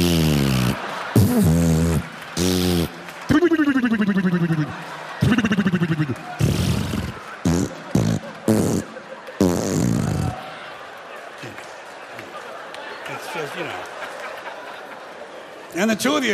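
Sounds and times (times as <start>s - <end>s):
vocal imitation of a vaginal fart: 0.0s - 10.4s
laughter: 0.0s - 15.7s
speech: 16.1s - 16.3s.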